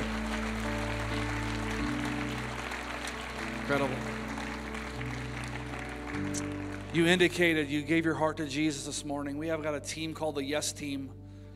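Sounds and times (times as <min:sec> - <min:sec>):
audience applause: 0:00.0 - 0:07.7
sustained low musical tones: 0:00.0 - 0:11.5
speech: 0:03.7 - 0:04.2, 0:06.3 - 0:11.2.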